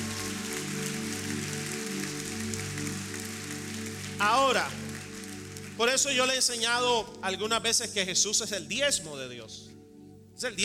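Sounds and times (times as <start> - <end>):
audience applause: 0.0 - 6.1
speech: 4.2 - 4.8, 5.8 - 9.7, 10.4 - 10.6.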